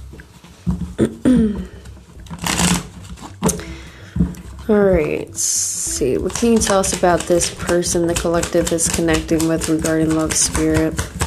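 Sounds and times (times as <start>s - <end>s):
deck of cards being shuffled: 1.6s - 4.7s, 6.2s - 11.2s
speech: 4.7s - 11.1s.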